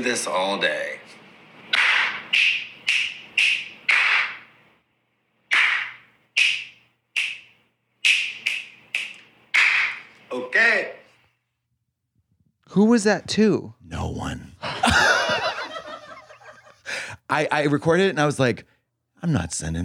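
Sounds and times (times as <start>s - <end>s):
speech: 0.0s - 1.2s, 12.7s - 14.8s, 17.3s - 19.8s
loud sharp finger snaps: 1.7s - 4.4s, 5.5s - 10.2s
hand claps: 1.7s - 4.5s, 5.5s - 10.1s
laughter: 14.6s - 17.0s.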